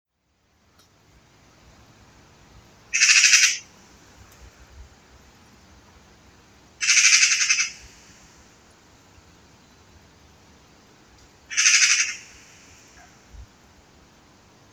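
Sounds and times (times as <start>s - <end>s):
Eurasian magpie Pica pica giving harsh rattling chatter calls: 2.9s - 3.6s, 6.8s - 8.0s, 11.5s - 13.1s.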